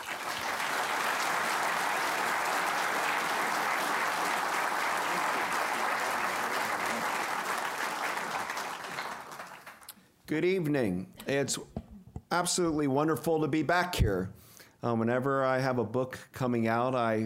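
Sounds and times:
audience applause welcoming author Douglas Brinkley at an evening book event: 0.0s - 9.9s
speech: 10.3s - 17.2s.

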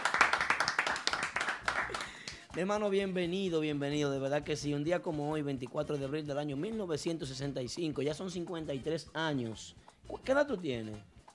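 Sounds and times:
applause: 0.0s - 2.8s
speech: 2.6s - 11.1s.

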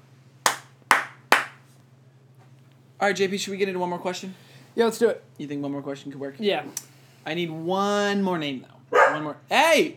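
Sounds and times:
hands clapping: 0.5s - 1.6s
speech: 3.0s - 9.9s.

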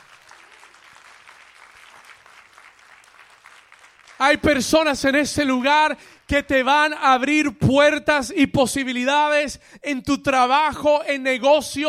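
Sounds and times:
audience applauding: 0.0s - 5.2s
speech: 4.2s - 11.8s.

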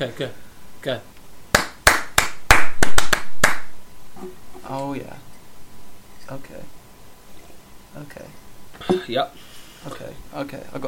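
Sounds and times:
speech: 0.0s - 1.1s, 4.2s - 5.3s, 6.3s - 6.8s, 7.9s - 10.8s
hands clapping: 1.5s - 3.8s.

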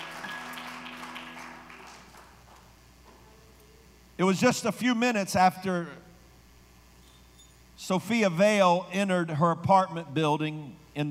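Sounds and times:
audience clapping: 0.0s - 2.8s
speech: 4.2s - 6.0s, 7.8s - 11.1s.

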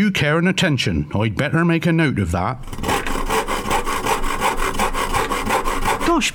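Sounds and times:
speech: 0.0s - 2.9s, 6.2s - 6.3s
hand saw cutting wood: 2.6s - 6.3s.

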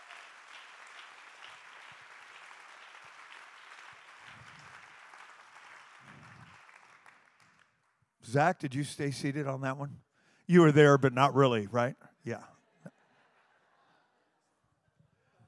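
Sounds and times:
audience clapping: 0.0s - 8.5s
speech: 8.3s - 12.5s.

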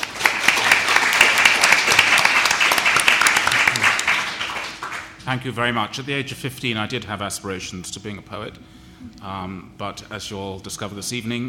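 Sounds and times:
audience applause welcoming a moderator at a panel event: 0.0s - 5.2s
speech: 5.3s - 11.4s.

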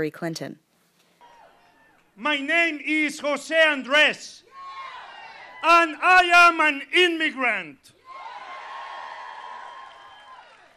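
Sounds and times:
speech: 0.0s - 0.6s, 2.2s - 4.4s, 5.6s - 8.0s
large crowd cheering at rally: 1.2s - 10.7s
crowd clapping at rally: 8.1s - 10.7s.

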